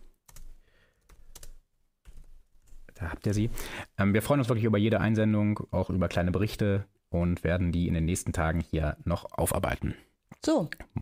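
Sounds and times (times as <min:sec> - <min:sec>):
typing a chat message on a computer keyboard: 0:00.1 - 0:02.9
speech: 0:03.0 - 0:11.0.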